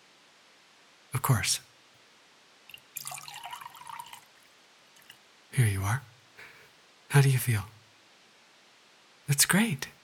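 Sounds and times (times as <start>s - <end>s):
speech: 1.3s - 1.7s, 5.6s - 6.1s, 7.1s - 7.8s, 9.3s - 10.0s
water being poured: 2.7s - 4.4s.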